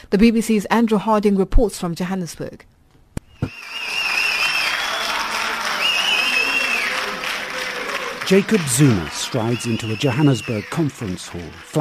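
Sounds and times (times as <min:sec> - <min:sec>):
speech: 0:00.1 - 0:02.8, 0:08.3 - 0:11.8
supporters cheering and clapping: 0:03.4 - 0:11.8.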